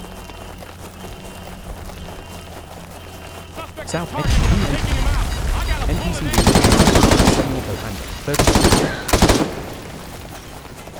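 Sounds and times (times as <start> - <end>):
speech: 3.9 - 5.2, 5.9 - 9.1
AK rifle gunfire in a video game: 6.3 - 10.2.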